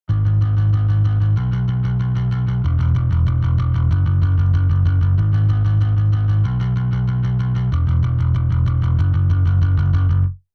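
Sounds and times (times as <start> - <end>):
bass: 0.0 - 10.5.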